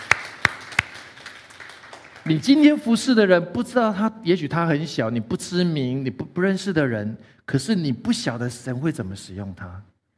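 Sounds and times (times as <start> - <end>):
applause: 0.0 - 2.7
speech: 2.3 - 9.9.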